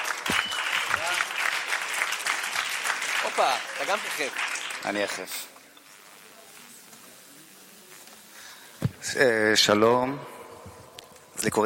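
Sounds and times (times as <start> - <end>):
audience applause: 0.0 - 5.3
speech: 3.2 - 5.5, 9.2 - 10.3, 11.4 - 11.6.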